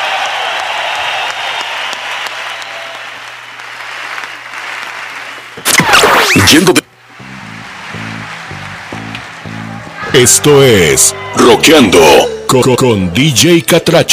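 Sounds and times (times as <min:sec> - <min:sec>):
crowd applauding: 0:00.0 - 0:05.7, 0:06.6 - 0:11.5
speech: 0:05.6 - 0:06.8, 0:10.1 - 0:14.1.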